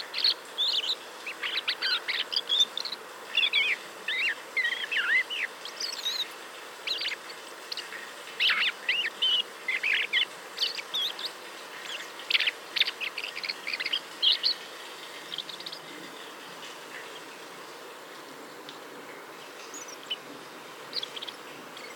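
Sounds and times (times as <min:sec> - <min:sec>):
common blackbird chirping: 0:00.0 - 0:06.3, 0:06.9 - 0:14.6, 0:20.9 - 0:21.9.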